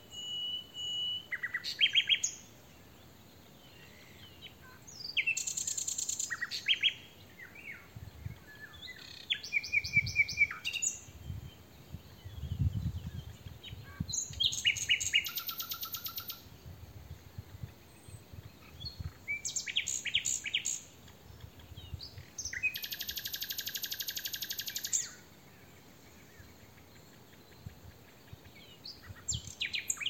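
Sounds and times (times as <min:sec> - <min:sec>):
common nightingale song: 0:00.0 - 0:30.0.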